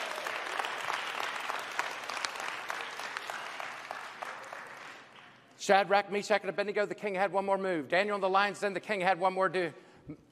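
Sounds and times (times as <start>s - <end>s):
audience applause: 0.0s - 5.4s
speech: 5.6s - 10.3s.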